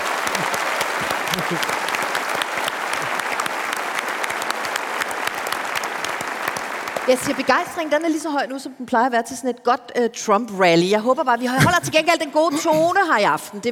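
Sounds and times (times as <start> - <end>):
audience crowd clapping: 0.0 - 8.2
speech: 1.4 - 1.8, 7.1 - 13.6.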